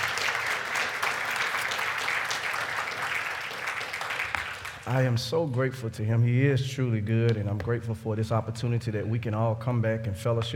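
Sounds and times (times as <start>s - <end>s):
audience clapping hands: 0.0s - 5.2s
speech: 4.9s - 10.5s.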